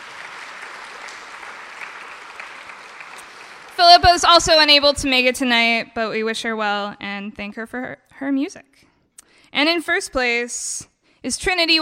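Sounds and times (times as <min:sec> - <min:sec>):
audience applause: 0:00.0 - 0:04.6
speech: 0:03.8 - 0:08.9, 0:09.5 - 0:11.7.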